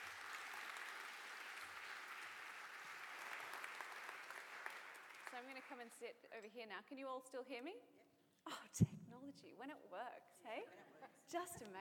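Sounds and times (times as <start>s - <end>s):
audience applause: 0.0s - 6.0s
speech: 5.4s - 8.1s, 8.7s - 11.7s.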